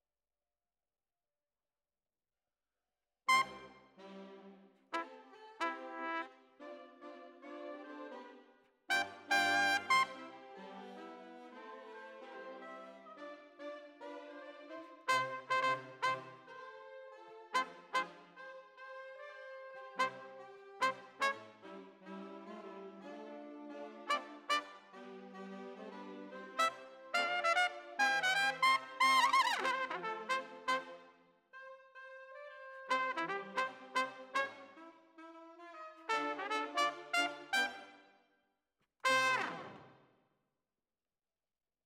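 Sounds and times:
trumpet: 3.3 - 4.0, 4.9 - 6.7, 8.9 - 12.0, 14.7 - 16.6, 17.5 - 38.0, 39.0 - 40.0.

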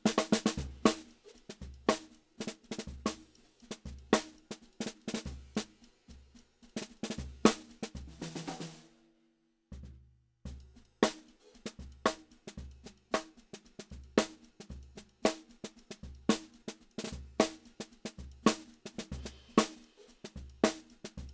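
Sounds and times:
snare drum: 0.0 - 9.0, 10.5 - 21.3.

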